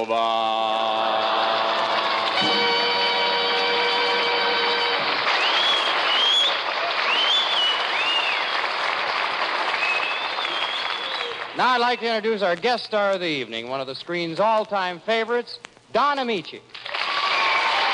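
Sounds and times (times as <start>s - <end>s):
speech: 0.0s - 1.0s, 11.6s - 16.8s
crowd cheering and applauding: 0.6s - 12.2s, 16.7s - 17.9s.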